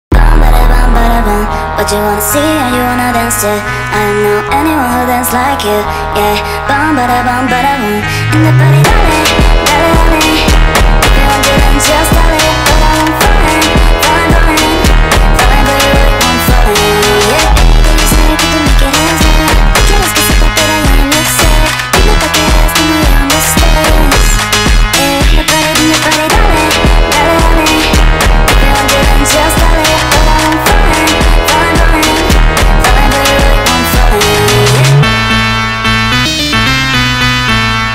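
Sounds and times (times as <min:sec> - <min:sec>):
phonk music: 0:00.1 - 0:37.9.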